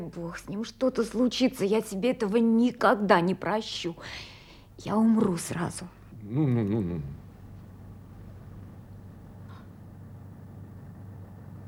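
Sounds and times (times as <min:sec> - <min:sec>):
speech: 0:00.0 - 0:07.2
motor boat engine droning: 0:06.2 - 0:11.6.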